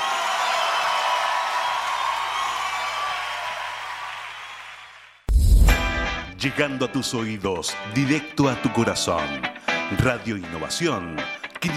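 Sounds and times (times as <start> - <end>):
faint crowd cheering: 0.0 - 5.3
loud applause from a large crowd: 0.0 - 5.3
speech: 6.4 - 11.7.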